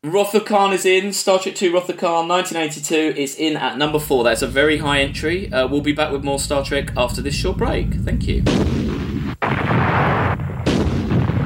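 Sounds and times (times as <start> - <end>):
speech: 0.0 - 9.1
booming sci-fi explosions of a meteorite storm sound effect: 3.9 - 11.4.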